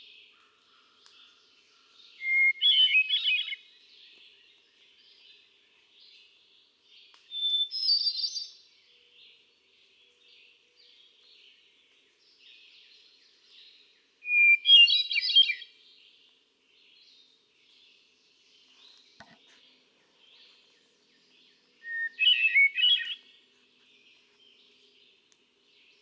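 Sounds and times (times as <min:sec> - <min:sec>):
Hermit Thrush: 0:00.3 - 0:06.4, 0:11.4 - 0:26.0.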